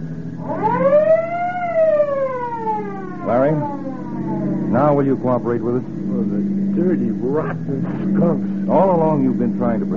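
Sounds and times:
car siren: 0.0 - 9.8
speech: 4.8 - 9.9.

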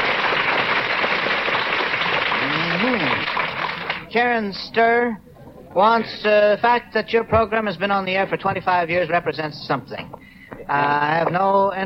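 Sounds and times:
audience applauding for audience members from Abilene: 0.0 - 4.1
speech: 4.1 - 11.8.

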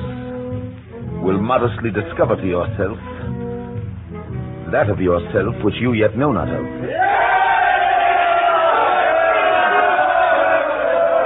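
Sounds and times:
speech: 1.3 - 3.2, 4.7 - 7.1
large crowd roaring and shouting: 6.8 - 11.2.

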